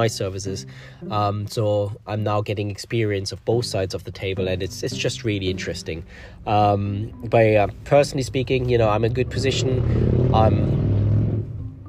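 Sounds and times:
speech: 0:00.0 - 0:10.8
car interior noise while driving: 0:07.3 - 0:11.8.

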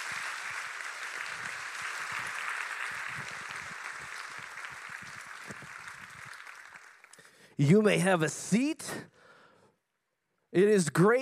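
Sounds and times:
church congregation applause welcoming the pastor at a morning service: 0:00.0 - 0:08.0
speech: 0:07.6 - 0:09.1, 0:10.5 - 0:11.1.

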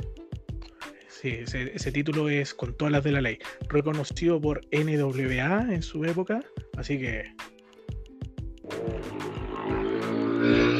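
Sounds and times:
speech: 0:01.2 - 0:07.5
motorcycle passing outside: 0:08.7 - 0:10.7.

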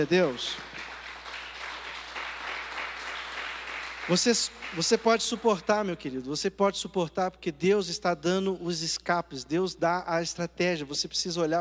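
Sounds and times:
speech: 0:00.0 - 0:00.7, 0:04.1 - 0:11.6
crowd applauding: 0:00.0 - 0:05.8.

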